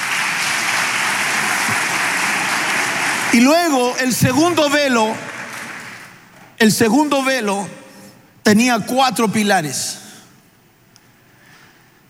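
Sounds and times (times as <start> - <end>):
audience applause: 0.0 - 6.2
speech: 3.3 - 5.3, 6.6 - 7.8, 8.5 - 10.0.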